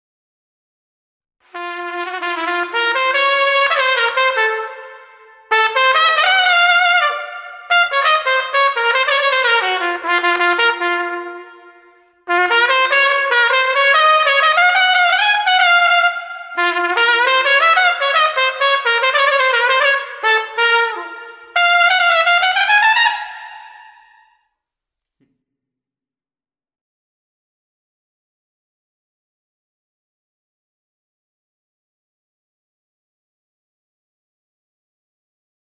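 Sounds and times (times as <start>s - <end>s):
trumpet: 1.5s - 24.3s.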